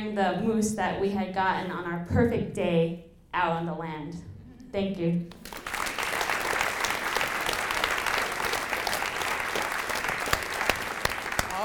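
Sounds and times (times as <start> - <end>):
speech: 0.0 - 5.6
audience applause: 5.4 - 11.6.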